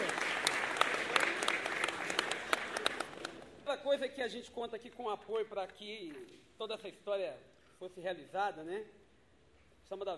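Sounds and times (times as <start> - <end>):
applause: 0.0 - 3.6
speech: 3.9 - 9.0, 9.9 - 10.1.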